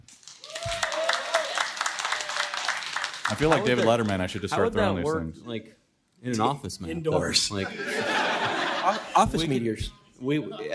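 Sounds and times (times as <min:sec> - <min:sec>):
audience applause: 0:00.0 - 0:04.5
laughter: 0:03.3 - 0:05.0, 0:07.5 - 0:09.7
speech: 0:03.3 - 0:08.2, 0:08.8 - 0:10.7.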